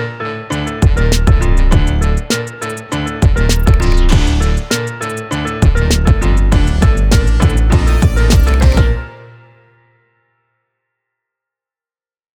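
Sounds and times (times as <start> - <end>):
piano trap beat in D minor: 0.0 - 9.2.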